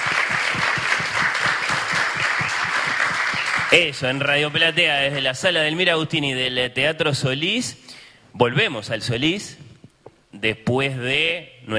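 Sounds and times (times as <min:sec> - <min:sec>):
applause: 0:00.0 - 0:05.4
speech: 0:03.7 - 0:07.8, 0:08.4 - 0:09.6, 0:10.4 - 0:11.7.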